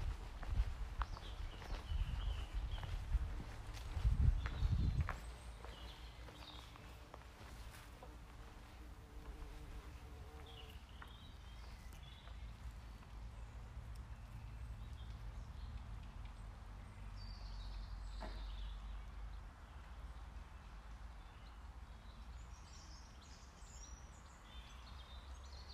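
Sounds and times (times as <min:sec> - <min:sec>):
steady low rumble: 0:00.0 - 0:05.1
birdsong along the woods by Gem River: 0:00.0 - 0:25.7.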